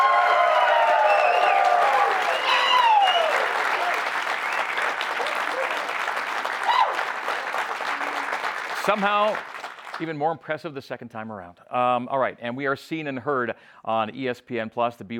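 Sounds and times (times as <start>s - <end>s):
live studio audience applause and cheering: 0.0s - 10.2s
whistles: 0.6s - 3.5s, 4.3s - 5.0s
speech: 8.9s - 15.1s.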